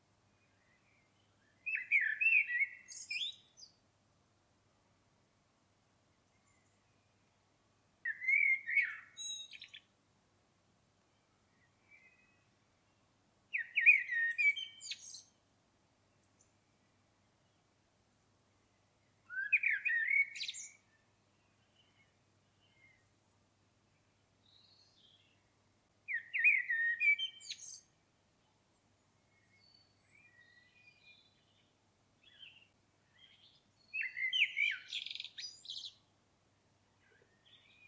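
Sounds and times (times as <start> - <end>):
common blackbird singing: 0.4 - 3.8, 8.1 - 9.9, 11.5 - 12.5, 13.5 - 15.4, 19.2 - 23.1, 26.1 - 27.9, 29.2 - 36.0, 37.0 - 37.8.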